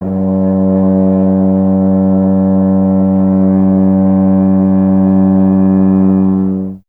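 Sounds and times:
tuba solo: 0.0s - 6.8s.

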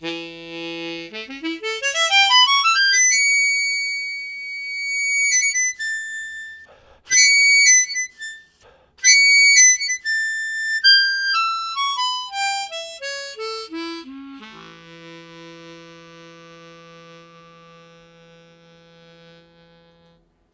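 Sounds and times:
harmonica riffs with slow glissando: 0.0s - 20.2s.

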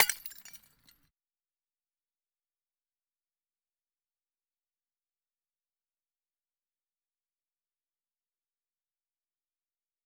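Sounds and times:
glass: 0.0s - 0.9s.

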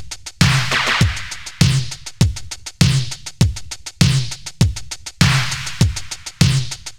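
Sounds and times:
beat: 0.4s - 2.1s, 5.2s - 6.7s.

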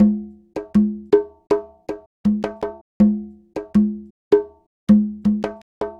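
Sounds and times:
conga Latin percussion: 0.0s - 5.9s.

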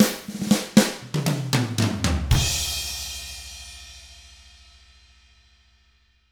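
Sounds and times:
R&B drums in 6-8 time: 0.0s - 4.0s.

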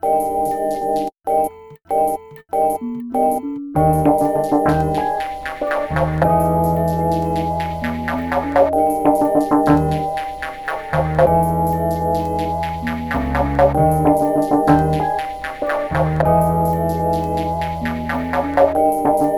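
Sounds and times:
hip-hop melody: 0.0s - 19.3s.

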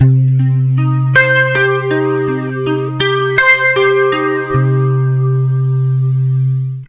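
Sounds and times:
acoustic guitar arpeggio loop in C: 0.0s - 6.8s.

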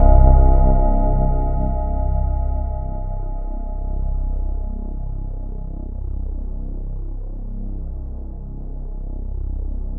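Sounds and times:
synth line: 0.0s - 6.4s.

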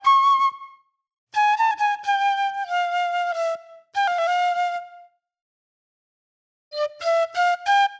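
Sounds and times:
shrill flute: 0.0s - 5.2s, 6.7s - 7.9s.

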